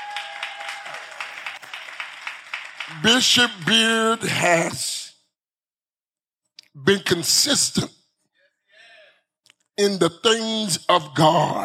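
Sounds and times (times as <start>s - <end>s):
crowd clapping: 0.0s - 4.5s
speech: 2.9s - 4.9s, 6.8s - 8.0s, 9.8s - 11.6s.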